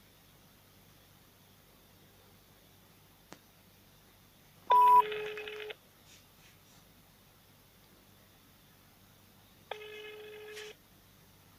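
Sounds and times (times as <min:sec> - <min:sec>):
telephone number being dialed: 0:04.7 - 0:05.8, 0:09.7 - 0:10.8.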